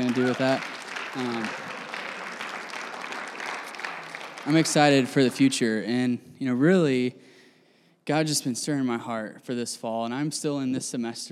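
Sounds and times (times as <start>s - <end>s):
audience clapping: 0.0s - 5.8s
speech: 0.1s - 1.7s, 4.4s - 7.3s, 8.0s - 11.3s.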